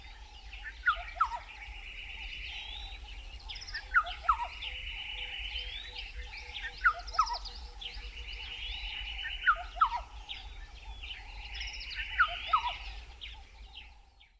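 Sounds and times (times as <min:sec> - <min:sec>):
black-headed oriole Oriolus larvatus: 0:00.0 - 0:14.3.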